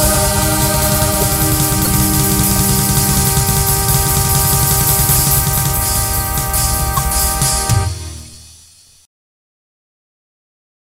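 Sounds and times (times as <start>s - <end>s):
national anthem: 0.0s - 8.5s.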